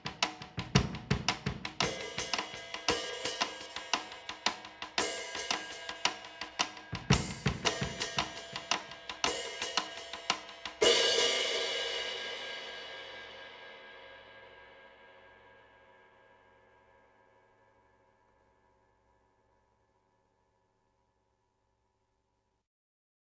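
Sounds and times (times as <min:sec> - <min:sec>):
drums: 0:00.0 - 0:15.7.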